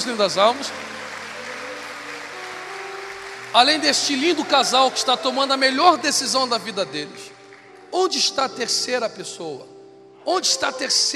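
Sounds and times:
speech: 0.0 - 0.9, 3.5 - 7.3, 7.9 - 11.1
audience applause: 0.0 - 7.7.

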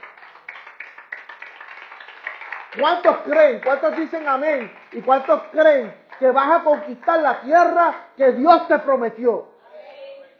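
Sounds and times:
audience applause: 0.0 - 6.2
speech: 2.8 - 9.5.

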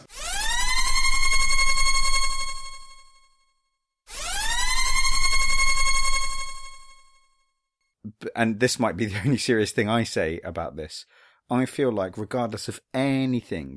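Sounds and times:
klaxon alarm blasts: 0.0 - 3.3, 4.1 - 7.2
speech: 8.4 - 13.7.

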